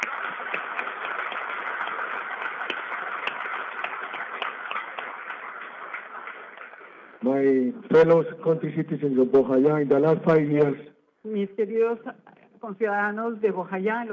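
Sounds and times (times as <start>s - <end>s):
crowd applauding: 0.0s - 7.5s
speech: 7.2s - 14.1s.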